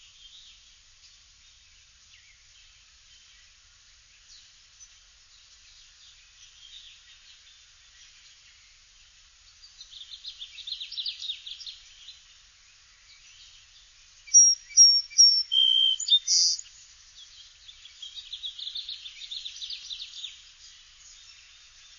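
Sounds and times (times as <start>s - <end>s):
song sparrow singing: 5.7s - 21.9s.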